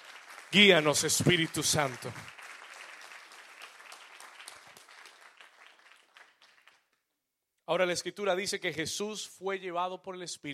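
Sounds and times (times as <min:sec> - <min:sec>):
crowd applause: 0:00.0 - 0:06.8
speech: 0:00.5 - 0:02.4, 0:07.7 - 0:10.5.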